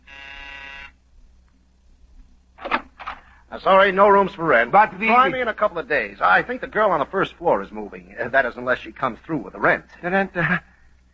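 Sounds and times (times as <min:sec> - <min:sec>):
doorbell buzzer ringing: 0:00.0 - 0:01.0
speech: 0:03.5 - 0:10.7.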